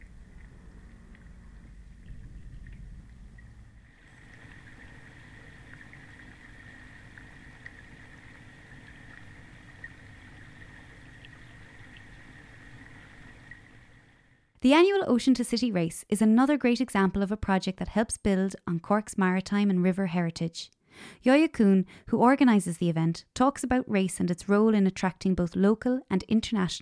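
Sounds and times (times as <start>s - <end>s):
underwater river sounds at Proby's Quay and Sullivan's Quay: 0.0s - 14.5s
speech: 14.6s - 26.7s.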